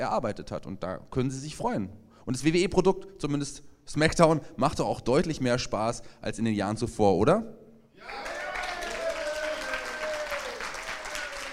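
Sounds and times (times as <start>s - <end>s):
speech: 0.0s - 8.3s
audience applause: 8.0s - 11.5s.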